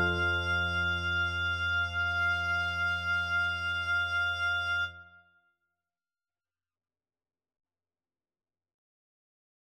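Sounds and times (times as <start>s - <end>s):
oboe melody: 0.0s - 5.0s.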